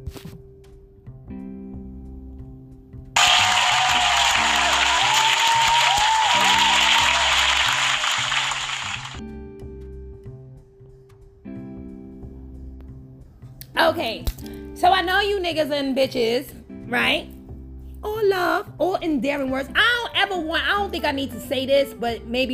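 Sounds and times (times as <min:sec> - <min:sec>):
applause: 0:03.2 - 0:09.2
speech: 0:13.9 - 0:17.3, 0:18.3 - 0:22.5.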